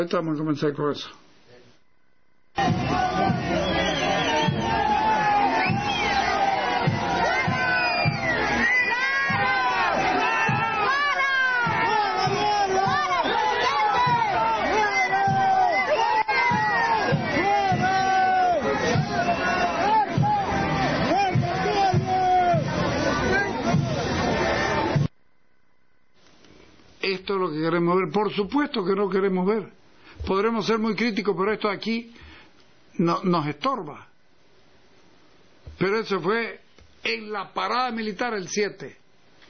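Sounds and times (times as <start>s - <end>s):
speech: 0.0s - 1.2s, 27.3s - 32.3s, 33.0s - 34.1s, 35.8s - 39.0s
crowd booing: 2.6s - 25.1s.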